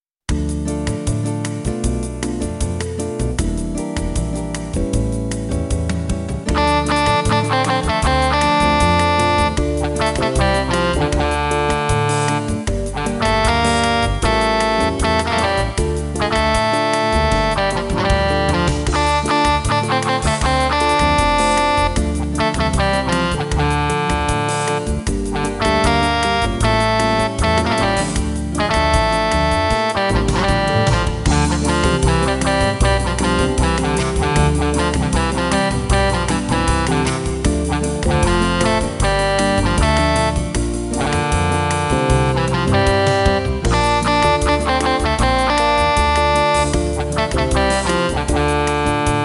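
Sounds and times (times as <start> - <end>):
jazz music: 0.3 - 49.2.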